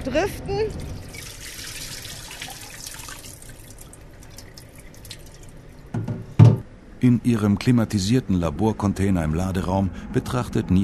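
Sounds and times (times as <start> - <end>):
speech: 0.1 - 0.9, 7.0 - 10.8
water dripping from a hauled plankton net: 0.8 - 5.9.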